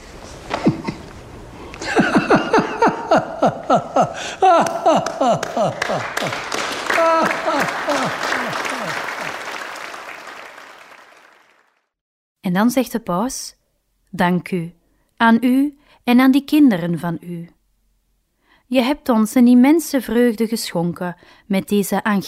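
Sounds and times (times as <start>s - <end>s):
laughter: 1.8s - 10.3s
speech: 3.4s - 6.4s, 12.6s - 17.6s, 18.7s - 22.2s
clapping: 4.6s - 11.9s.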